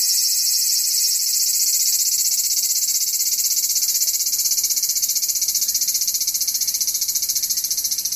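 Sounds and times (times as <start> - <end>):
aburazemi cicada: 0.0 - 8.1.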